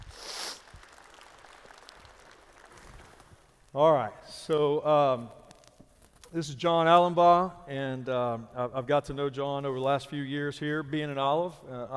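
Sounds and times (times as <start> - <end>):
audience applause: 0.0 - 3.6
speech: 3.7 - 5.4, 6.3 - 11.9.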